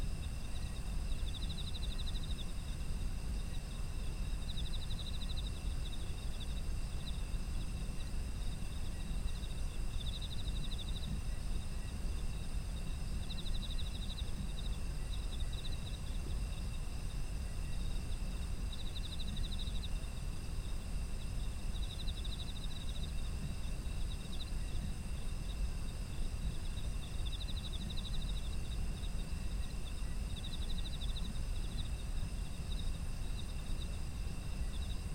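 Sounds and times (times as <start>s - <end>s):
insects chirping: 0.0s - 35.1s.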